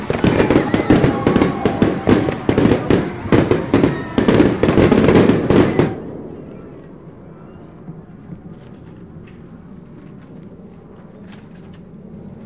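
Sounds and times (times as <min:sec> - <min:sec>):
fireworks bursting in the sky: 0:00.0 - 0:06.2.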